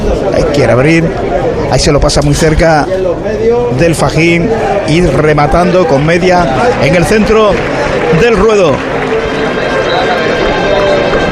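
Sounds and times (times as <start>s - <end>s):
speech: 0.3s - 9.2s
crowd applause in a bullring for a bullfighter: 4.6s - 11.3s.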